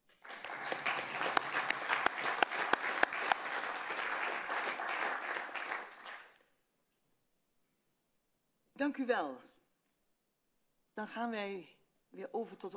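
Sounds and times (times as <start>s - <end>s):
applause: 0.0s - 6.5s
speech: 8.8s - 9.5s, 11.0s - 12.7s.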